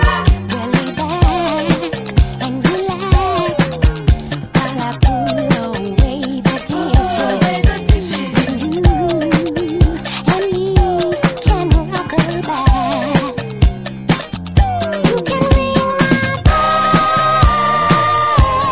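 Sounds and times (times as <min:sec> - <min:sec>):
disco music: 0:00.0 - 0:18.6.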